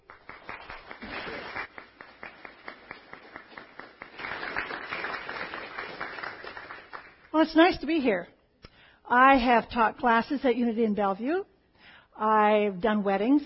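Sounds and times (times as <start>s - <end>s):
audience applause welcoming a reverend at Unity of Bellevue church: 0.0s - 7.2s
speech: 7.4s - 8.4s, 9.1s - 11.5s, 12.2s - 13.4s.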